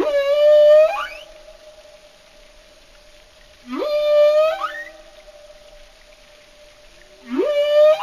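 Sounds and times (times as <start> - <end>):
marine animal underwater whistle calls: 0.0 - 1.4, 3.7 - 5.1, 7.3 - 8.0.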